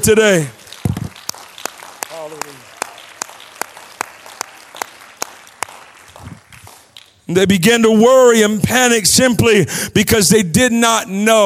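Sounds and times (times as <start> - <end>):
speech: 0.0 - 0.6, 7.3 - 11.4
audience clapping in rhythm: 0.0 - 7.4.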